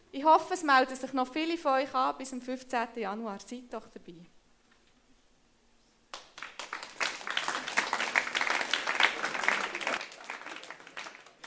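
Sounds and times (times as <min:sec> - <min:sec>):
speech: 0:00.1 - 0:04.4
audience applause: 0:06.2 - 0:11.4.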